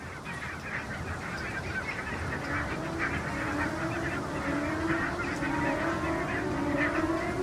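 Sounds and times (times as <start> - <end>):
flock of greylag geese honking taking off: 0.0 - 7.4
steady rushing noise: 0.8 - 7.4.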